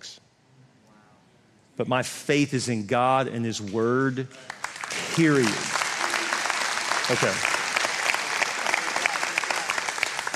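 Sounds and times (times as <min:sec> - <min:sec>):
speech: 0:01.8 - 0:04.6, 0:05.2 - 0:05.8, 0:07.1 - 0:07.5
audience clapping: 0:04.3 - 0:10.3.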